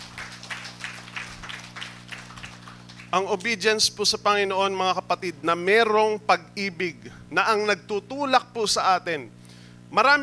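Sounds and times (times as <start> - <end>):
church congregation clapping during a service: 0.0 - 3.6
low constant hum: 0.0 - 10.2
speech: 3.1 - 10.2.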